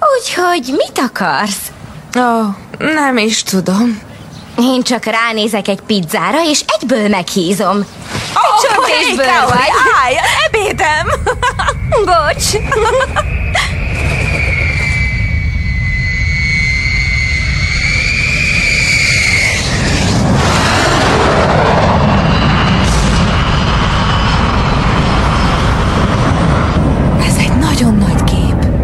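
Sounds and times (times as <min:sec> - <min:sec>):
speech: 0:00.4 - 0:13.6
high thin whine: 0:08.2 - 0:28.3
laughter: 0:08.4 - 0:13.8
American bomber warplane flying over: 0:09.0 - 0:28.8.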